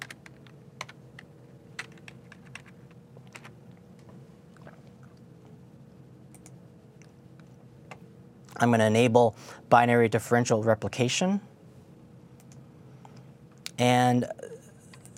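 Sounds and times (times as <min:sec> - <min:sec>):
typing on a computer keyboard: 0:00.0 - 0:03.5
steady low hum: 0:00.0 - 0:15.1
speech: 0:08.6 - 0:11.5, 0:13.8 - 0:14.5.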